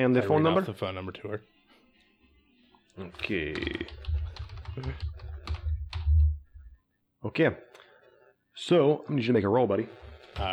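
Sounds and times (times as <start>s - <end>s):
speech: 0.0s - 1.6s, 3.0s - 4.1s, 4.8s - 5.2s, 7.2s - 7.7s, 8.6s - 10.5s
typing: 3.2s - 6.3s.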